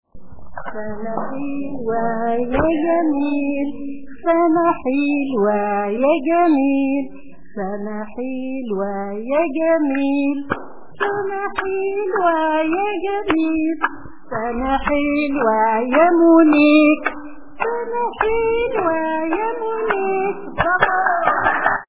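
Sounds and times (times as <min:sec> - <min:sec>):
Arabic birthday song: 0:00.2 - 0:21.8.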